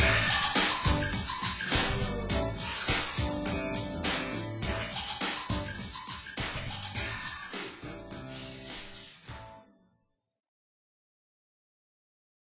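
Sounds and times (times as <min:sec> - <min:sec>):
ambient music: 0:00.0 - 0:09.9.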